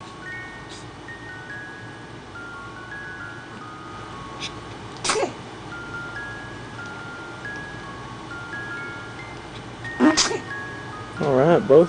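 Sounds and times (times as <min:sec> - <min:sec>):
person sneezing: 0:04.4 - 0:05.4, 0:10.0 - 0:10.5.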